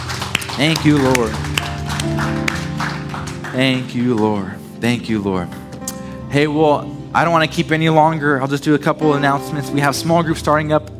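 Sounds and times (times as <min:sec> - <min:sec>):
crowd clapping in praise: 0:00.0 - 0:04.8
speech: 0:00.6 - 0:02.6, 0:03.5 - 0:05.6, 0:06.3 - 0:10.9.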